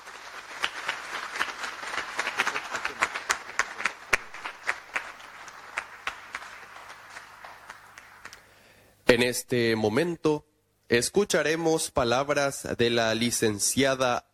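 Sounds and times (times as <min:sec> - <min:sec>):
audience applause: 0:00.0 - 0:08.5
speech: 0:09.1 - 0:14.3.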